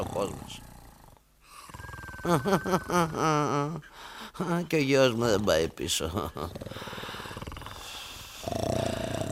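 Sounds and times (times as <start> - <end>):
snoring: 0.0 - 2.4, 6.5 - 9.3
speech: 0.2 - 0.7, 2.2 - 6.9.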